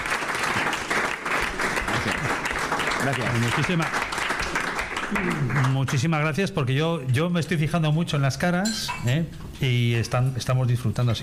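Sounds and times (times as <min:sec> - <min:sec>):
audience applause for a restaurant kitchen team: 0:00.0 - 0:06.3
speech: 0:03.0 - 0:04.0, 0:05.1 - 0:11.2.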